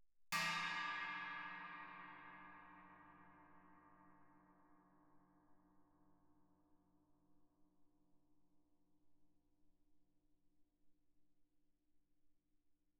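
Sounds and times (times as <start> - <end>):
Chinese suspended cymbal struck with stick shoulder: 0.4 - 5.0.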